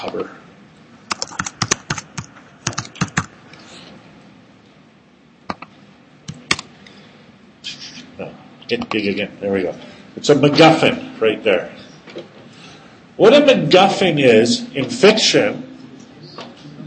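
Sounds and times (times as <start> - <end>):
speech: 0.0 - 0.4, 8.2 - 11.8, 13.2 - 15.7
typing on a computer keyboard: 1.1 - 3.3.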